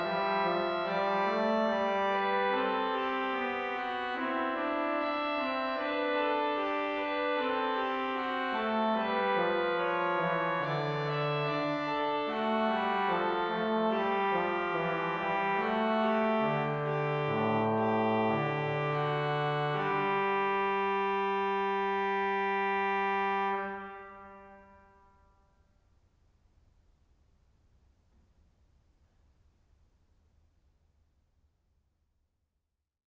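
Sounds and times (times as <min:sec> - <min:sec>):
organ playing canons: 0:00.0 - 0:24.8.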